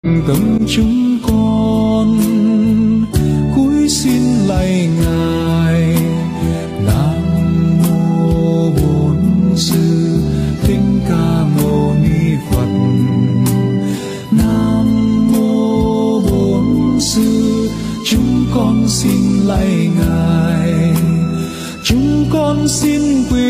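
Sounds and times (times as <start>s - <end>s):
Buddhist music: 0.1s - 23.4s.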